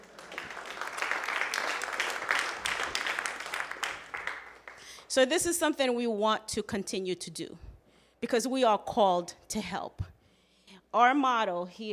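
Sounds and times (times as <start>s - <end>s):
round of applause: 0.0s - 5.1s
speech: 5.2s - 10.1s, 10.9s - 11.9s.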